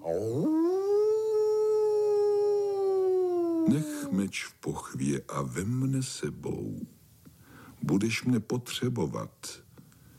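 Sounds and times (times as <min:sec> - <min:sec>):
wolf howling: 0:00.0 - 0:04.1
speech: 0:03.7 - 0:07.0, 0:07.8 - 0:09.6.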